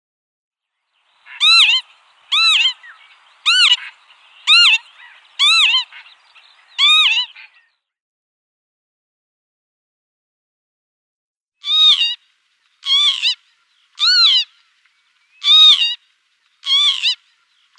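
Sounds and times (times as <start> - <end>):
northern lapwing flock calls: 1.1 - 7.6, 11.6 - 17.7.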